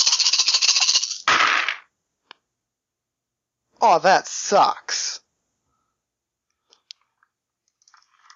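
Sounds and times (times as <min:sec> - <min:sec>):
dice clattering: 0:00.0 - 0:01.9
speech: 0:03.8 - 0:05.1.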